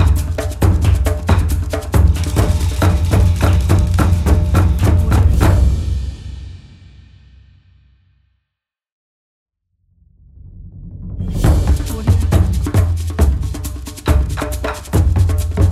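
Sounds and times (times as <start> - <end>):
tribal ritual dance percussion: 0.0 - 6.8, 11.0 - 15.7.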